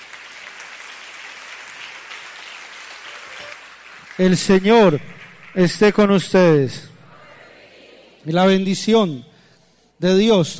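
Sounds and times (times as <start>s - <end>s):
audience applauding: 0.0s - 6.2s
speech: 4.2s - 6.9s, 8.2s - 9.3s, 10.0s - 10.5s.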